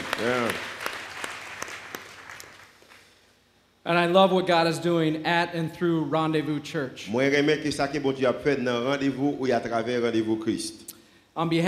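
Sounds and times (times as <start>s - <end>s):
audience applause: 0.0s - 3.1s
speech: 0.2s - 0.7s, 3.9s - 10.8s, 11.4s - 11.6s.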